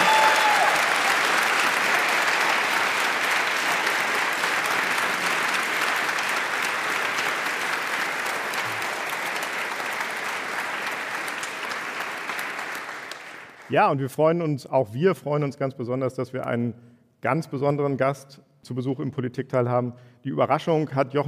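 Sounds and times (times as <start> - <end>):
audience applause: 0.0 - 13.7
speech: 13.7 - 21.2.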